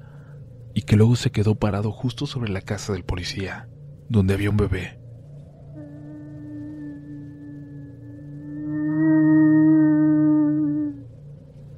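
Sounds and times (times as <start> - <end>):
speech: 0.8 - 5.0
eerie crying wail: 5.4 - 11.4.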